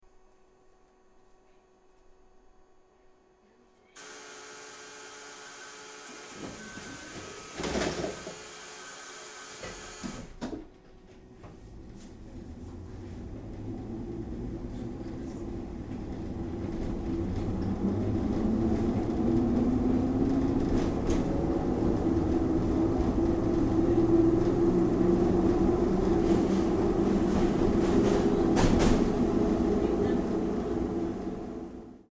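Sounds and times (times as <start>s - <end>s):
tram starting off: 12.2s - 32.0s.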